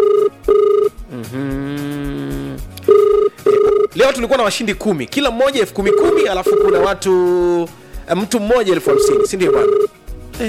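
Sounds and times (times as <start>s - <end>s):
telephone ringing for an incoming call during a cash prize game: 0.0s - 1.0s, 2.8s - 4.0s, 5.8s - 7.1s, 8.7s - 10.0s
speech: 1.2s - 1.5s, 4.0s - 9.8s.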